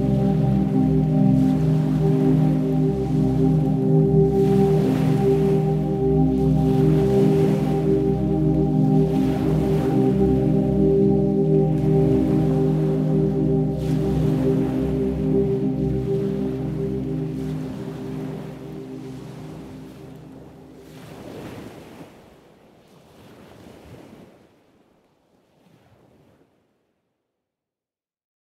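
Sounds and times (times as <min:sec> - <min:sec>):
relaxing spa meditation music for stress relief: 0:00.0 - 0:22.0.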